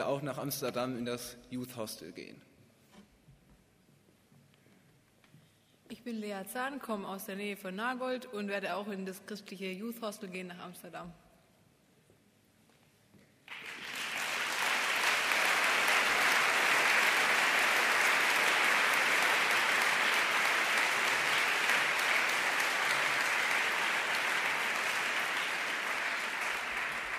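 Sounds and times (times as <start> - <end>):
speech: 0.0 - 2.5, 6.0 - 11.2
audience applause: 13.5 - 27.1.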